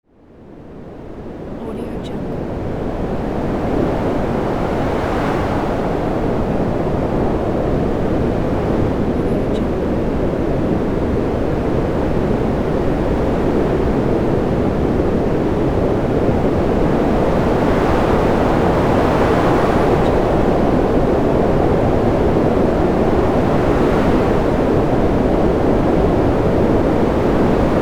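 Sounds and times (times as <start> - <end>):
wind: 0.1 - 27.7.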